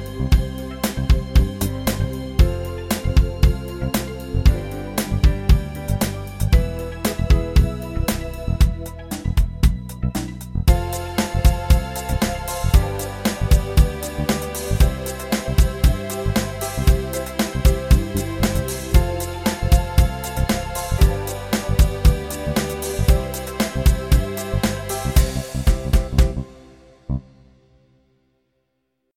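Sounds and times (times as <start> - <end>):
8 Beat analog drum rhythms: 0.0 - 26.9.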